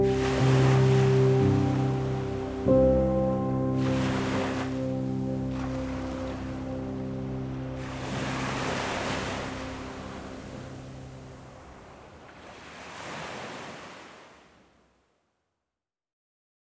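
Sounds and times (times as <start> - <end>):
sleepy relaxation piano: 0.0 - 12.4
ocean sounds: 0.0 - 14.9.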